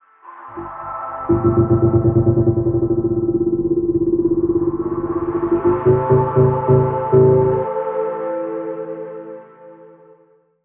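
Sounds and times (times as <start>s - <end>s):
pulsing aura musical sting: 0.5s - 7.8s.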